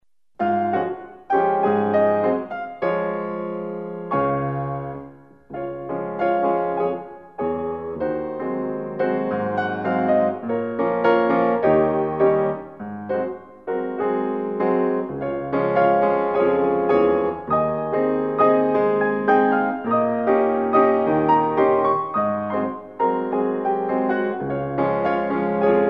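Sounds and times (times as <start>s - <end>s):
tango music for ballet tendu: 0.4s - 25.8s.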